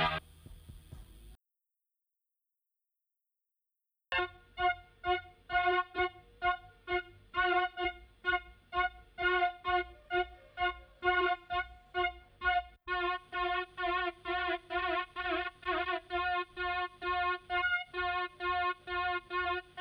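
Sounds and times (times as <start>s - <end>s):
synthesizer harmony: 0.0s - 0.2s, 4.1s - 19.7s.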